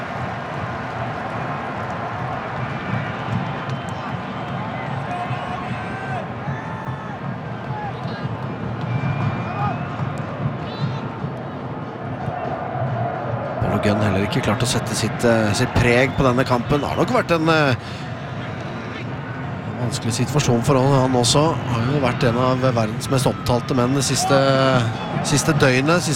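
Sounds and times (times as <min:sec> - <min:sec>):
stadium crowd cheering and chanting: 0:00.0 - 0:26.1
speech: 0:13.8 - 0:18.0, 0:19.9 - 0:26.1.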